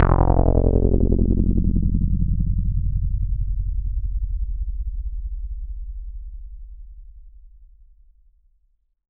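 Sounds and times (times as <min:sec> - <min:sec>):
Roland SH-09 synth bass: 0:00.0 - 0:06.6.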